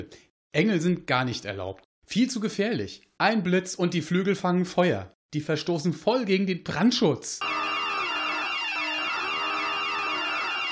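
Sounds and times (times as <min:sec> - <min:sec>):
speech: 0:00.0 - 0:07.8
alarm horn sound effect: 0:07.4 - 0:10.6.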